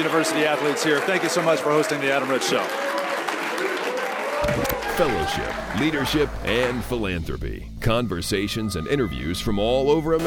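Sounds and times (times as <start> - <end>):
speech: 0.0 - 3.8, 4.4 - 10.2
audience applause: 0.0 - 7.0.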